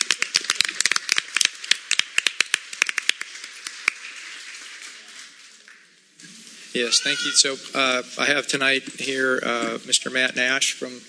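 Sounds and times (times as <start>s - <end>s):
small group clapping: 0.0s - 5.8s
speech: 6.8s - 11.0s.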